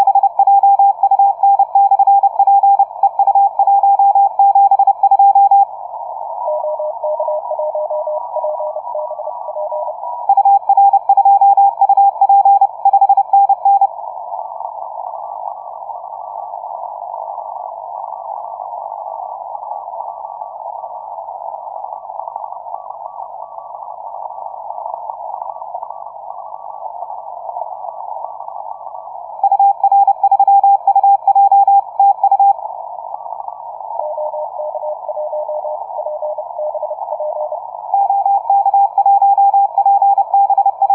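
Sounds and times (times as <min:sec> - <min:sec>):
CW morse code radio signal on 30m band: 0:00.0 - 0:05.7, 0:06.4 - 0:13.9, 0:29.4 - 0:32.6, 0:34.0 - 0:40.9.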